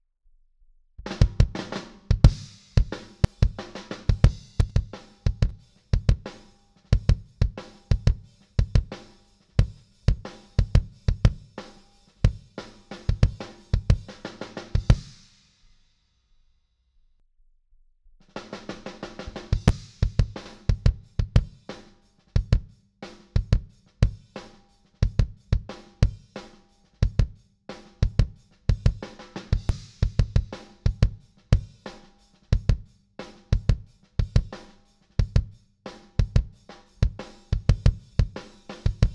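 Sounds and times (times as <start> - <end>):
kick drum: 1.0 - 6.3, 6.9 - 9.0, 9.6 - 11.5, 13.1 - 14.1, 14.8 - 15.2, 19.6 - 21.6, 22.4 - 22.8, 23.4 - 24.3, 25.0 - 26.2, 27.0 - 27.4, 28.0 - 31.8, 32.5 - 32.9, 33.5 - 34.6, 35.2 - 35.6, 36.2 - 39.1.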